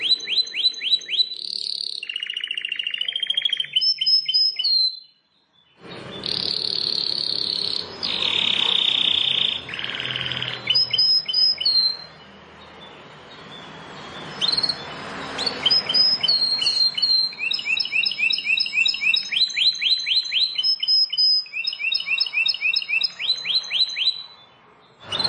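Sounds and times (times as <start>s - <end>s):
bar-winged prinia singing chirps and buzzy notes: 0.0s - 25.2s.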